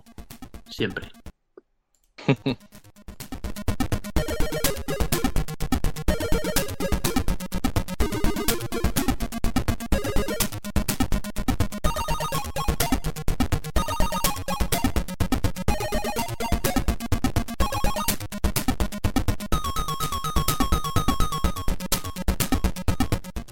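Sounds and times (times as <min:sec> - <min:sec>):
Amstrad CPC video game music: 0:00.0 - 0:01.3, 0:02.4 - 0:23.5
speech: 0:00.7 - 0:01.2, 0:02.3 - 0:02.8
laughter: 0:02.2 - 0:02.6.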